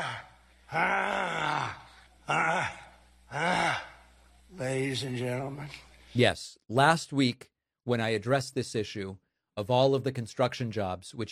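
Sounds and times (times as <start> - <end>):
grunting attributed to Donald Trump: 0.0 - 4.0
speech: 0.7 - 3.5, 4.6 - 11.3.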